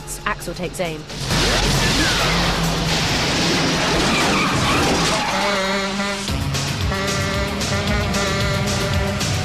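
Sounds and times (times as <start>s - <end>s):
speech: 0.2s - 2.4s
speeding van engine roaring: 1.0s - 9.4s
speeding van skidding away with tire squeals: 1.8s - 6.3s.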